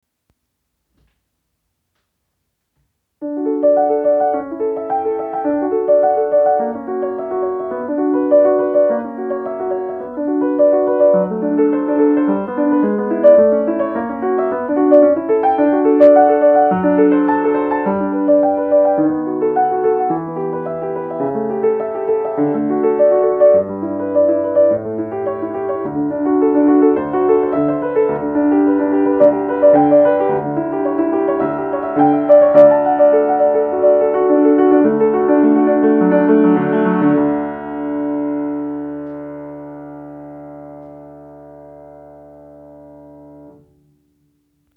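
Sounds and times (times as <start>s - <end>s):
solfeggio in D: 3.2s - 43.7s.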